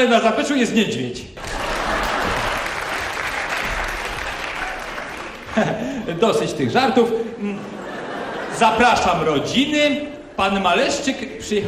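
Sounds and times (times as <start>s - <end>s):
speech: 0.0s - 1.6s, 5.6s - 7.8s, 8.6s - 11.6s
studio audience applause at a radio show taping: 1.4s - 6.2s
laughter: 1.4s - 11.6s.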